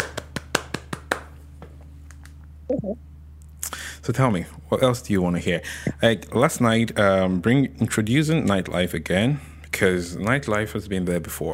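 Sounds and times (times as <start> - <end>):
person clapping hands: 0.0 - 2.4
speech: 2.7 - 3.1, 4.0 - 11.5.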